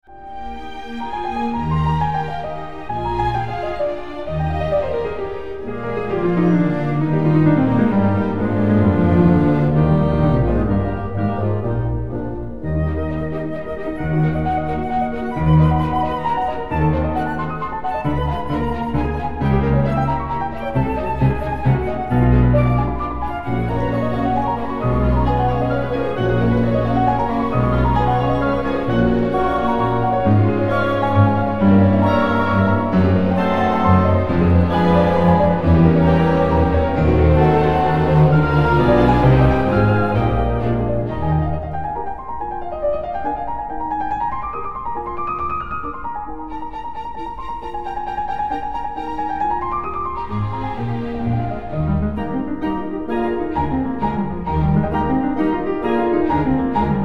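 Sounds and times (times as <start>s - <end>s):
piano concerto allegro: 0.0s - 57.0s.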